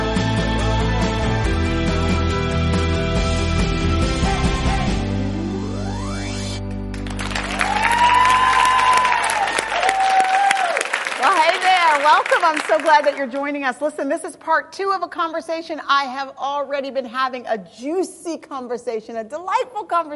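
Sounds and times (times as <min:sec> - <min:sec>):
music: 0:00.0 - 0:10.0
audience applauding talk program guests: 0:06.9 - 0:13.3
speech: 0:12.5 - 0:20.1.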